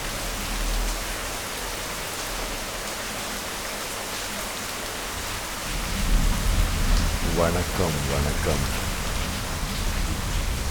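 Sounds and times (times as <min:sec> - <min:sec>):
heavy rain: 0:00.0 - 0:10.6
speech: 0:07.4 - 0:08.8.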